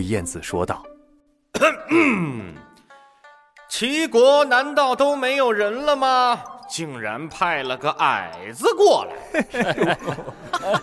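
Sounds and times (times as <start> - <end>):
speech: 0.0 - 0.9, 1.6 - 2.6, 3.7 - 10.8
man clearing his throat: 1.5 - 2.6
laughter: 9.1 - 10.8.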